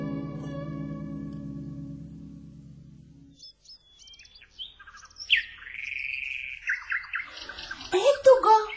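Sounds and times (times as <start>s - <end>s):
nightingale singing: 3.2s - 8.7s.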